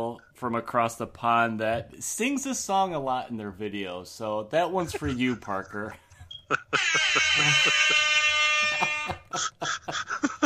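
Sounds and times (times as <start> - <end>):
speech: 0.0 - 8.2, 9.4 - 10.0
laughter: 4.8 - 10.4
air horn: 7.3 - 9.3.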